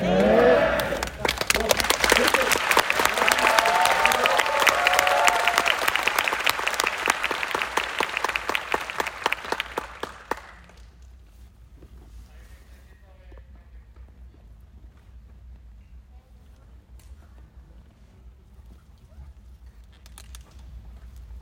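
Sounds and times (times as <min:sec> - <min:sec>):
audience applause: 0:00.0 - 0:10.9.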